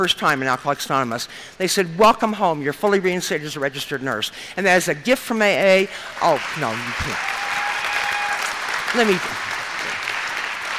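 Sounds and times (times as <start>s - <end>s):
speech: 0.0s - 7.4s, 8.9s - 9.5s
audience applause: 6.2s - 10.7s
vocal cheer or whoop: 7.1s - 10.7s.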